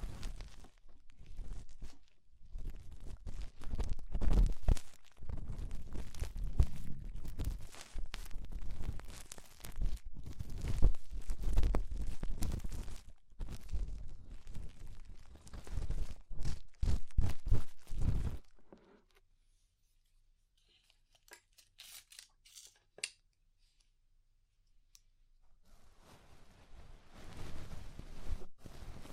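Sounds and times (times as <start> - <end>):
ear cleaning crackling and scraping: 0.0 - 19.3, 25.6 - 29.1.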